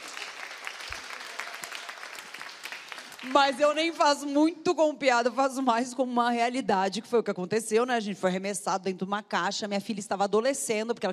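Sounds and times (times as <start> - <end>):
applause: 0.0 - 4.2
speech: 3.2 - 11.1.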